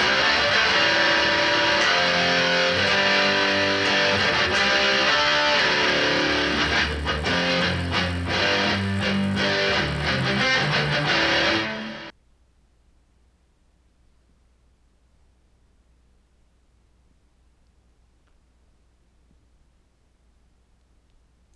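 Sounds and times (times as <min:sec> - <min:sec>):
crunchy guitar riff: 0:00.0 - 0:12.1.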